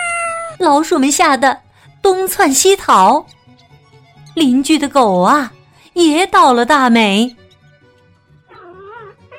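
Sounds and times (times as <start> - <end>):
cat yowling loudly: 0.0 - 0.6, 8.5 - 9.3
speech: 0.6 - 3.4, 4.4 - 7.4.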